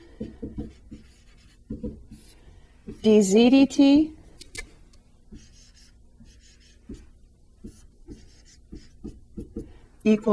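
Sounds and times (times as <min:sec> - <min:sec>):
pen scratching while writing out steps of a related rates math problem: 0:00.6 - 0:02.3, 0:05.3 - 0:07.0, 0:07.6 - 0:09.6
speech: 0:03.0 - 0:04.2, 0:10.1 - 0:10.3.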